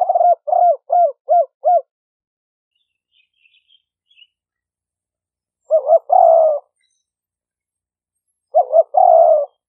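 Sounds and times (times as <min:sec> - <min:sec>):
spotted dove cooing: 0:00.0 - 0:01.9, 0:05.6 - 0:06.8, 0:08.5 - 0:09.6.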